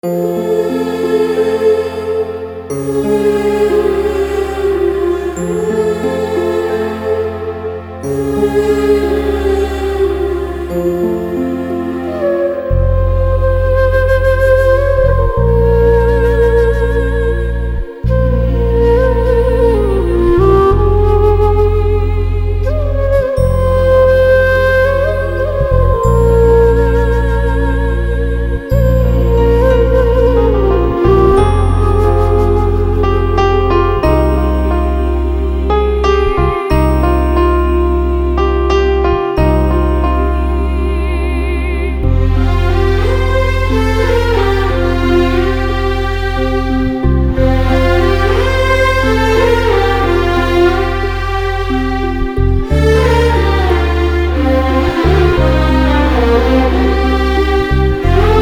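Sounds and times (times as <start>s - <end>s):
instrumental music: 0.0s - 58.4s.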